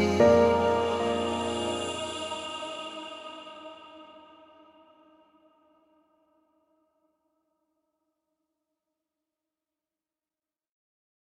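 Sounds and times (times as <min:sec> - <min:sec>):
acoustic national anthem cover: 0:00.0 - 0:03.7.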